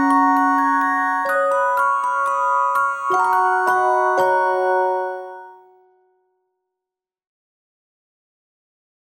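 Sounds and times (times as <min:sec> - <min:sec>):
music box playing Christmas music: 0:00.0 - 0:05.9.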